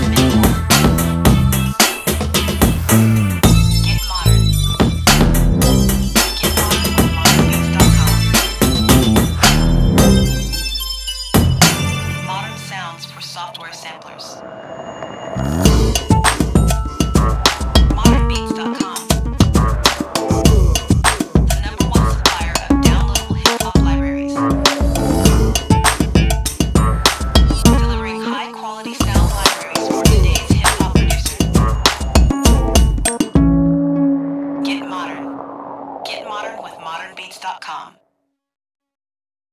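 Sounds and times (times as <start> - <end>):
bass: 0.0 - 12.2, 15.4 - 28.1, 29.0 - 35.4.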